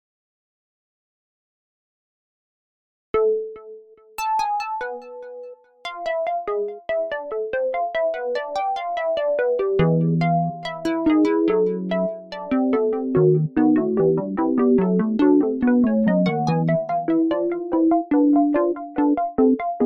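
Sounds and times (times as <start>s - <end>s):
prelude in A minor: 4.2s - 19.8s.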